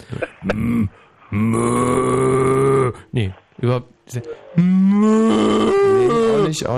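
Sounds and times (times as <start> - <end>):
speech: 0.4 - 2.1, 3.1 - 5.8, 6.4 - 6.7
person imitating a cow mooing: 0.4 - 3.0, 4.6 - 6.7.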